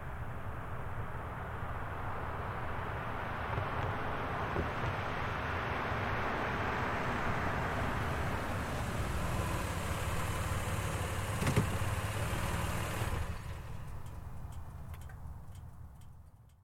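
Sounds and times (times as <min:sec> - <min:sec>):
Highlander car driving up slowly and stopping: 0:00.2 - 0:16.2.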